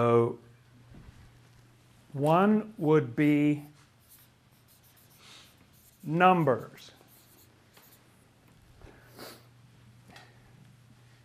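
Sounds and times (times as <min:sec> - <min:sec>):
speech: 0:02.2 - 0:03.7, 0:06.0 - 0:07.0
writing on a board: 0:04.0 - 0:08.0.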